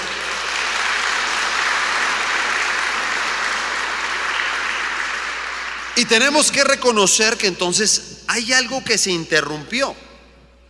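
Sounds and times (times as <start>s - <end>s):
audience applause: 0.0s - 6.0s
speech: 6.0s - 10.1s.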